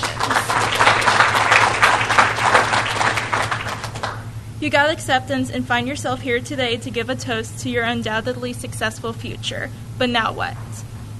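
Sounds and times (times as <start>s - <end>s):
crowd applauding: 0.0s - 4.3s
low steady hum: 0.0s - 11.1s
speech: 4.6s - 11.1s.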